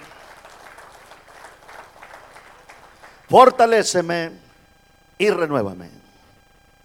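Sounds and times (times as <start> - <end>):
audience applauding: 0.0 - 3.4
speech: 3.3 - 4.4, 5.2 - 6.0.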